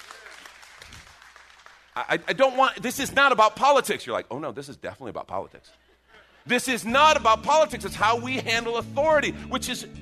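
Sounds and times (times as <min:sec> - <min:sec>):
crowd clapping: 0:00.0 - 0:02.8
speech: 0:02.0 - 0:09.9.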